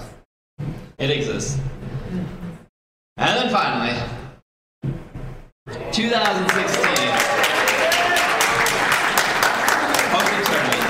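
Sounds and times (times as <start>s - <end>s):
speech: 1.0s - 2.4s, 3.2s - 4.2s, 6.0s - 7.1s
audience round of applause during a talk about Pokémon games: 6.2s - 10.8s.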